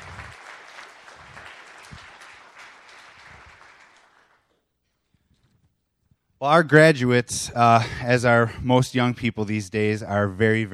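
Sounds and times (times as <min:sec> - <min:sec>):
crowd applauding for graduates: 0:00.0 - 0:04.6
speech: 0:06.4 - 0:10.7.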